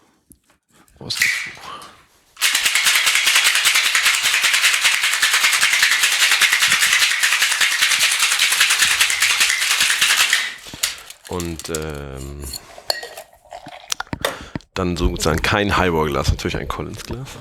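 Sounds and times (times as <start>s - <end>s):
speech: 1.0s - 1.9s, 11.3s - 12.7s, 14.8s - 17.3s
cocktail shaker rattling with ice: 1.1s - 1.8s, 2.4s - 14.2s.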